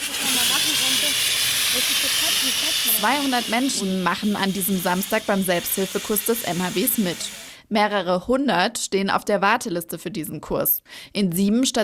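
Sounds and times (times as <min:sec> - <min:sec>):
water-filled fire extinguisher spraying: 0:00.0 - 0:07.6
speech: 0:01.8 - 0:11.8.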